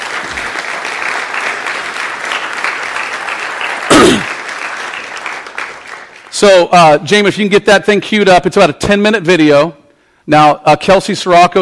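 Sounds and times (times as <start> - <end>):
audience applause: 0.0 - 6.4
speech: 6.4 - 11.6.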